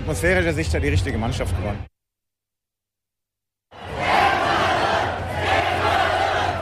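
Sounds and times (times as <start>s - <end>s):
speech: 0.1s - 1.9s
football stadium crowd cheering at Germany vs Ecuador: 3.7s - 6.5s.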